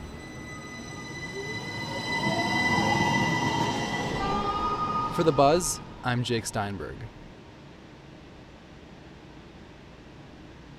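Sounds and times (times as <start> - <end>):
streetcar zipping by: 0.0 - 7.4
speech: 5.2 - 7.2.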